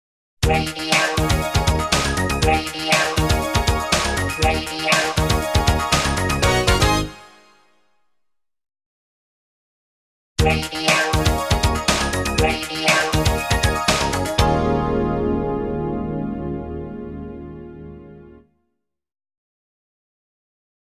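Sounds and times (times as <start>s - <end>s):
radio station call jingle: 0.4s - 7.4s, 10.4s - 18.1s.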